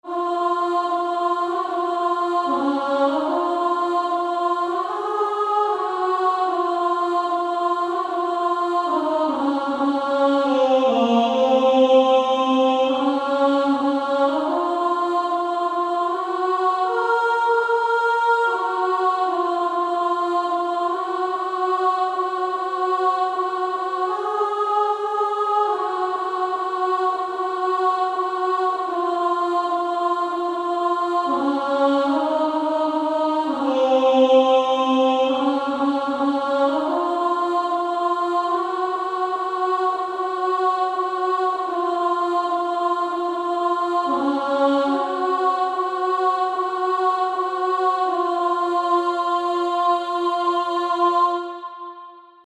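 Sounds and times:
female choir alto part singing: 0.0s - 52.4s.

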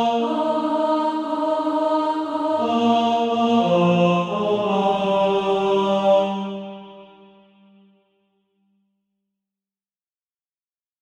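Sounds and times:
tenor SATB practice part: 0.0s - 7.0s.

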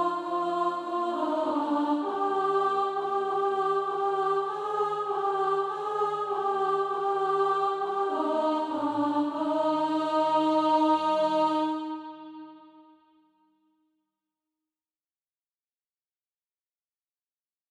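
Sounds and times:
alto voice singing SATB practice music: 0.0s - 12.9s.

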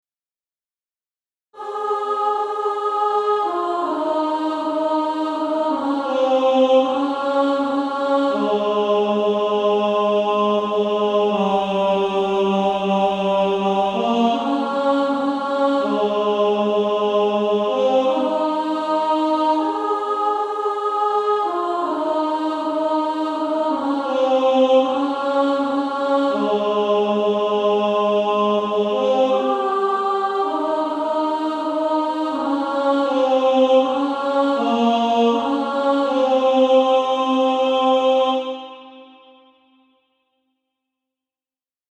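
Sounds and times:
female choir singing: 1.6s - 39.5s.

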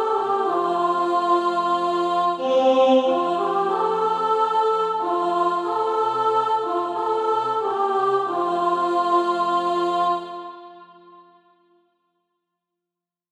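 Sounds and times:
soprano singing: 0.0s - 10.4s.

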